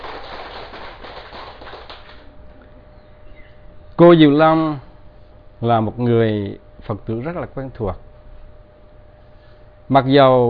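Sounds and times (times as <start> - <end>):
audience applause: 0.0 - 2.3
speech: 4.0 - 4.9, 5.6 - 8.0, 9.9 - 10.4.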